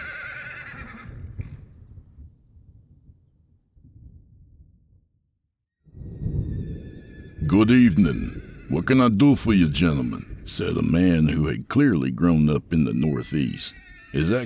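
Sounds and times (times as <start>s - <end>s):
horses whinnying and snorting in response to the pull on the reins: 0.0s - 1.6s, 6.7s - 11.0s, 12.9s - 14.4s
speech: 7.5s - 14.4s.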